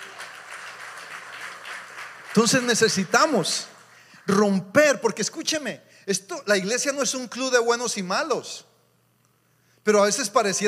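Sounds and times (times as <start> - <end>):
audience in church applauding: 0.0 - 4.4
speech: 2.3 - 3.7, 4.3 - 8.7, 9.8 - 10.6.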